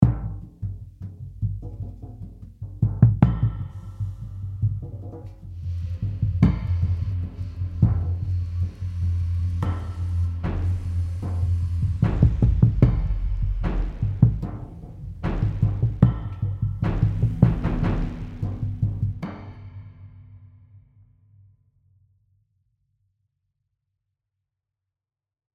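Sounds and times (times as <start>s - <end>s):
drums: 0.0s - 20.1s.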